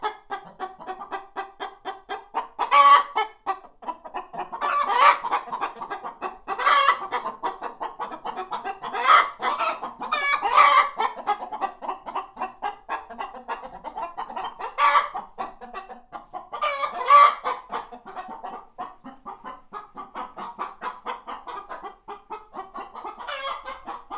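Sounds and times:
two Hungarian hens clucking in a farmyard coop: 0.0 - 24.1.

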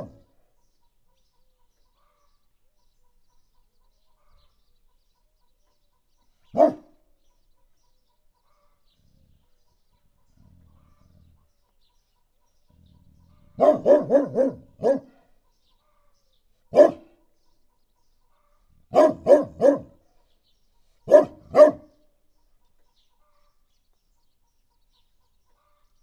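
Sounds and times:
dog in a farmyard: 6.5 - 7.0, 13.4 - 15.3, 16.7 - 17.2, 18.9 - 20.0, 21.1 - 22.0.

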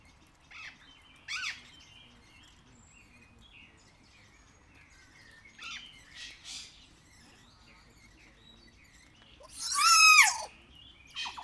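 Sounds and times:
captive kea giving a harsh screech in a zoo at Jászberény: 9.4 - 10.5, 11.2 - 11.4.

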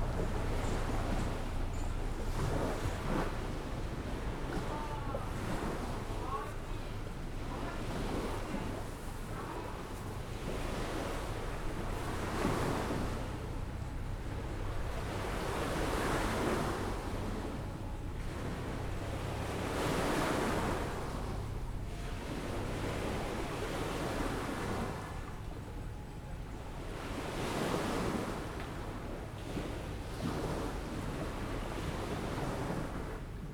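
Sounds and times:
car on the left heard from a terrace: 0.0 - 6.1, 9.9 - 26.8
seaside ambience in Skala Potamia on Thassos: 0.0 - 33.5.

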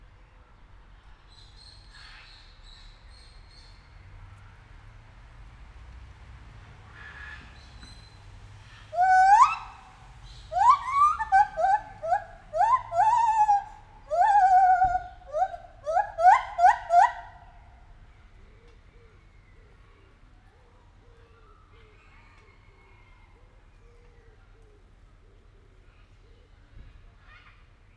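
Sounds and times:
captive white-handed gibbon hooting in a zoo: 8.9 - 9.9, 10.5 - 17.4.

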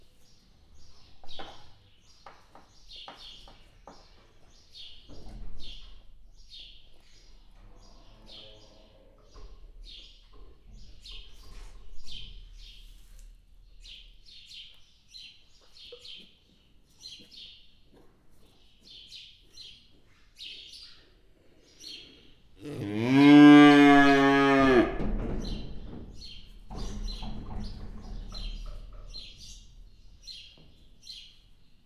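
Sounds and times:
aurochs bellowing from the top of a fence in Hortobágy National Park: 22.6 - 25.0.

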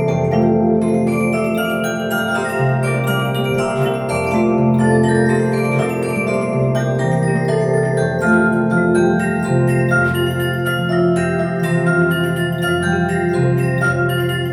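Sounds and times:
music box with metal disc, Swiss, 1902: 0.0 - 14.5.

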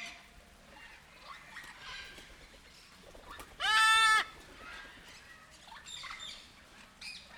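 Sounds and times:
captive sulphur-crested cockatoo squawking at a zoo: 3.4 - 5.0.

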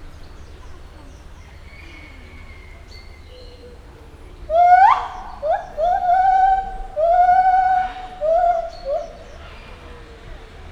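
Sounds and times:
captive white-handed gibbon whooping hoots at a zoo in Hungary: 4.5 - 9.4.

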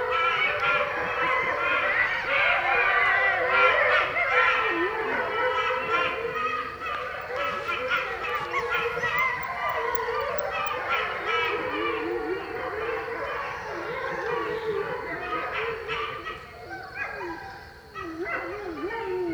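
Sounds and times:
wolves in Hortobágy National Park: 0.0 - 19.3
golden jackals in Hortobágy National Park: 4.0 - 12.0.

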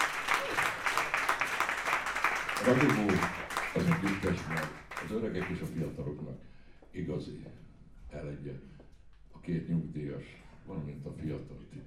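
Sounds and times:
audience applause at a music event: 0.0 - 5.8
speech: 2.6 - 3.4, 4.0 - 8.8, 9.4 - 11.8.

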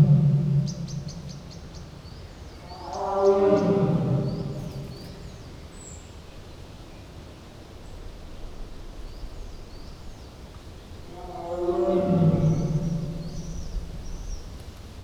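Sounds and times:
lion with its back to the microphone: 0.0 - 2.0, 2.6 - 5.4, 11.0 - 14.3
tiger with its back to the microphone: 0.0 - 5.5, 10.9 - 14.4.

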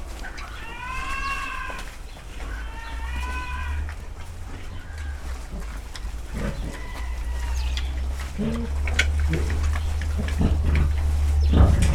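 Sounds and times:
sheep in a farmyard: 0.0 - 11.9
rooster in a farmyard: 0.2 - 11.9
pig squealing in a farmyard stable: 0.4 - 4.0, 6.3 - 11.9.

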